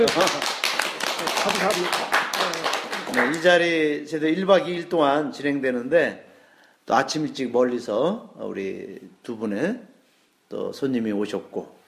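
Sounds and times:
speech: 0:00.0 - 0:02.2, 0:03.1 - 0:06.3, 0:06.9 - 0:09.9, 0:10.5 - 0:11.8
audience clapping: 0:00.0 - 0:03.7.

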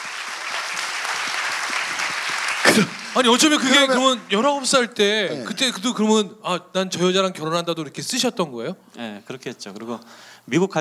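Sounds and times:
audience applause: 0:00.0 - 0:05.0
speech: 0:02.8 - 0:10.7.

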